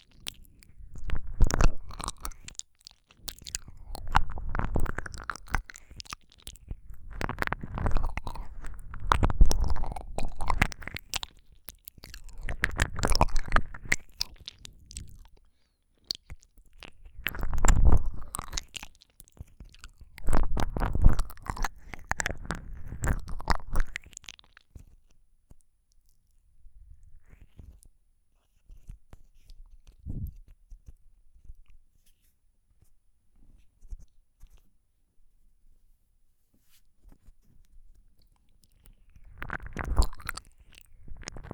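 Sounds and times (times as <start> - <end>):
ear licking with tongue: 0.0 - 15.4, 16.0 - 24.6, 38.7 - 41.5.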